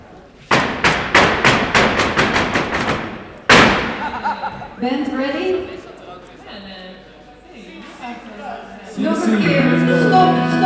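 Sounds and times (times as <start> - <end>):
heavy stomps on a hollow wooden stage during a rehearsal: 0.4 - 4.7
laughter: 3.8 - 5.0
speech: 4.8 - 5.8, 9.0 - 10.6.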